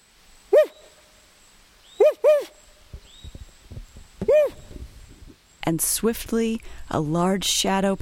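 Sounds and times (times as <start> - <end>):
man imitating a territorial owl call: 0.5 - 0.9, 2.0 - 2.6, 4.2 - 4.9
speech: 5.7 - 8.0.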